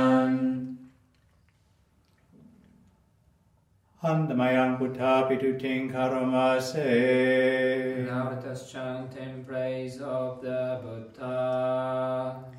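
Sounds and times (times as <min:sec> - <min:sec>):
morning chanting in Pali and English: 0:00.0 - 0:00.9, 0:04.0 - 0:12.5.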